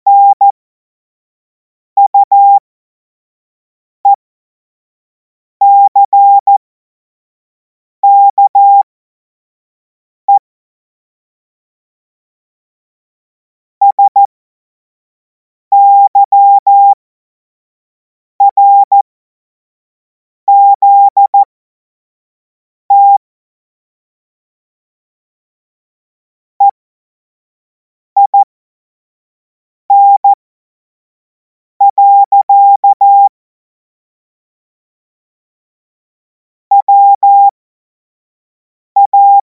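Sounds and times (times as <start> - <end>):
CW Morse code beeps: 0.1 - 0.5, 2.0 - 2.6, 5.6 - 6.6, 8.0 - 8.9, 13.8 - 14.3, 15.7 - 17.0, 18.4 - 19.0, 20.5 - 21.5, 22.9 - 23.2, 28.2 - 28.5, 29.9 - 30.4, 31.8 - 33.3, 36.7 - 37.5, 39.0 - 39.4.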